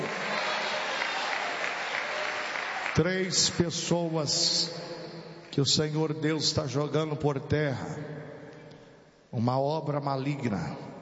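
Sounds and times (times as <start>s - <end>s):
congregation applauding during a church service: 0.0s - 3.9s
speech: 3.0s - 4.9s, 5.6s - 8.2s, 9.3s - 10.9s.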